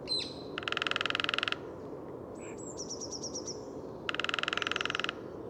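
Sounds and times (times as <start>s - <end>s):
Lesser Spotted Woodpecker calling: 0.1s - 1.7s, 2.9s - 5.3s.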